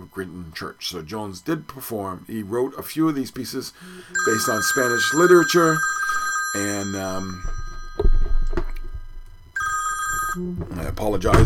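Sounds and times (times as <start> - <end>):
speech: 0.1 - 7.6, 10.4 - 11.4
phone on a piano ringing: 4.0 - 10.8.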